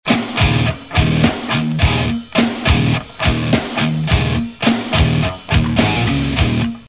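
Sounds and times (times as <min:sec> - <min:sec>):
depressing rock music: 0:00.0 - 0:06.8.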